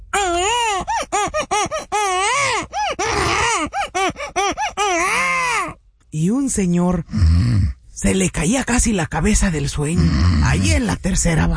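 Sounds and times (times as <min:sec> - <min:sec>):
baby crying: 0:00.1 - 0:05.8
speech: 0:06.2 - 0:11.5.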